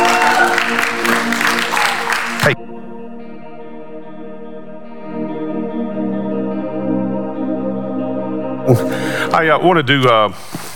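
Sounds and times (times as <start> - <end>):
audience hand clapping: 0.0 - 2.6
steady sustained musical tones: 0.0 - 9.9
speech: 8.7 - 10.6.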